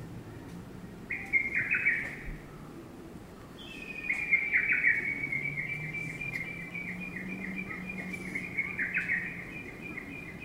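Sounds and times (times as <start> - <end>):
lesser cuckoo song: 1.1 - 2.2, 3.6 - 10.4.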